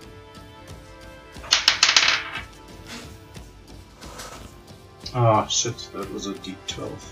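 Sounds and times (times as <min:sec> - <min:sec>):
polyhedral dice clattering across a tabletop: 0:01.4 - 0:02.5
speech: 0:05.1 - 0:07.1.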